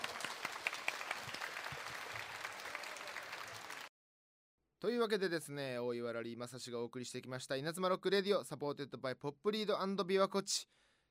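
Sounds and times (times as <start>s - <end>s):
crowd applauding: 0.0s - 3.9s
speech: 4.8s - 11.0s.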